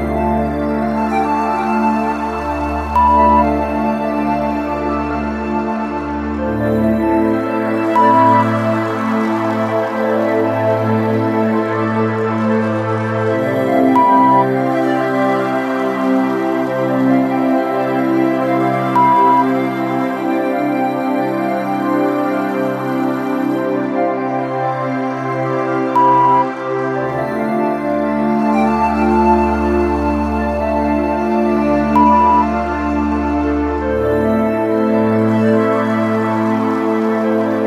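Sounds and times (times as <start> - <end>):
meditative relaxing background music in F at 70 bpm: 0.0 - 37.6.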